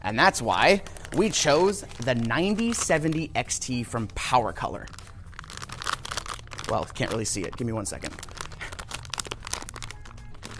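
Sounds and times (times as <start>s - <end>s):
speech: 0.0s - 5.0s, 6.7s - 8.2s
strong tape pulled off while unboxing a PowerColor 9070 XT graphics card: 0.7s - 3.4s, 4.9s - 10.5s.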